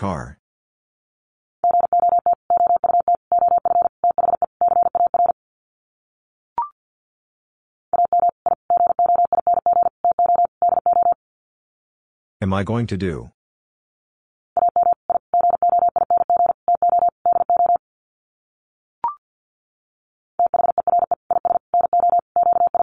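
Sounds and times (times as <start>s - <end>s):
speech: 0.0s - 0.4s, 12.4s - 13.4s
Morse code tones at 50 words per minute: 1.6s - 5.4s, 8.0s - 11.2s, 14.6s - 17.8s, 20.4s - 22.8s.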